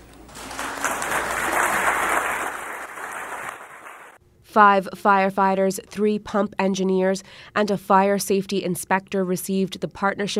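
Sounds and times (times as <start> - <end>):
crowd clapping: 0.0 - 4.2
speech: 4.5 - 10.3.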